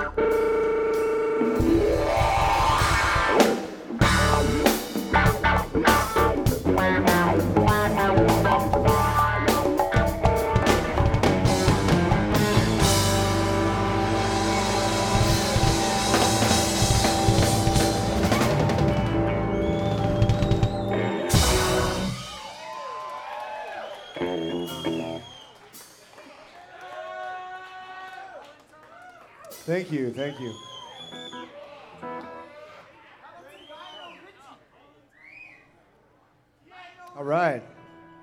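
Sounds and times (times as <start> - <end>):
space funk music: 0.0 - 22.8, 24.1 - 26.2.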